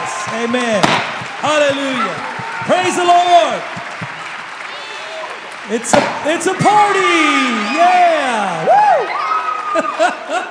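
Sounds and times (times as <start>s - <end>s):
audience applause and cheering: 0.0s - 10.4s
speech: 0.4s - 3.8s, 5.7s - 9.2s, 9.8s - 10.4s
laughter: 9.5s - 10.4s.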